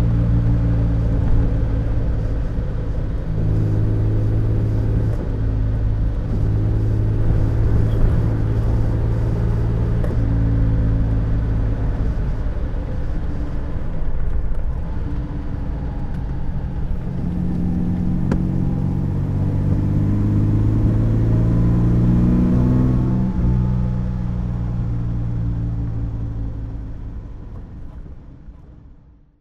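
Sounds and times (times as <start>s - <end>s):
Aston Martin DB2 Vantage engine while driving: 0.0s - 29.2s.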